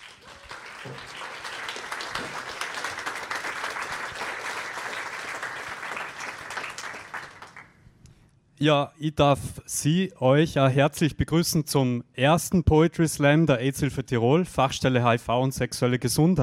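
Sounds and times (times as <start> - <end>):
audience applause: 0.0 - 7.7
speech: 0.8 - 1.1, 8.6 - 16.4.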